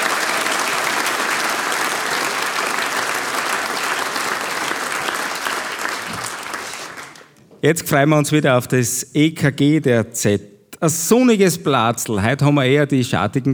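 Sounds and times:
audience applause: 0.0s - 7.4s
speech: 7.6s - 13.5s.

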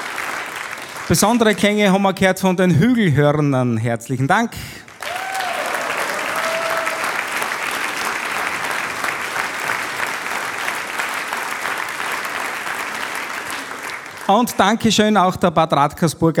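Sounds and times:
audience applause: 0.0s - 1.8s, 4.9s - 14.7s
speech: 1.1s - 4.9s, 14.3s - 16.3s.

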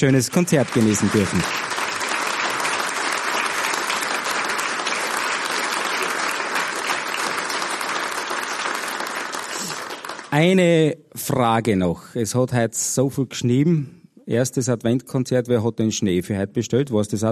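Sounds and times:
speech: 0.0s - 1.7s, 10.4s - 17.2s
concert audience applause: 0.0s - 10.4s.

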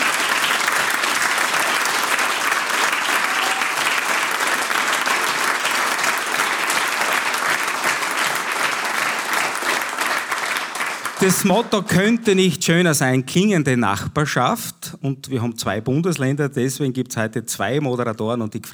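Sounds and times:
audience applause in a sold-out barn: 0.0s - 12.5s
speech: 11.2s - 18.7s.

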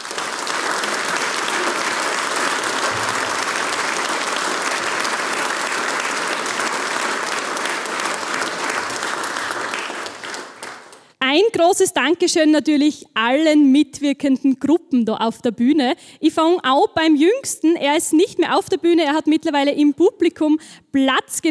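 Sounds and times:
audience applause: 0.0s - 11.1s
speech: 11.6s - 21.4s.

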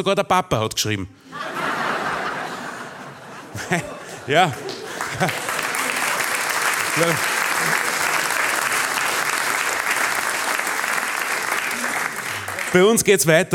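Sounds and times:
speech: 0.0s - 1.6s, 3.6s - 5.5s, 7.0s - 7.8s, 12.7s - 13.5s
laughter: 1.2s - 9.7s
audience applause: 3.7s - 13.1s.

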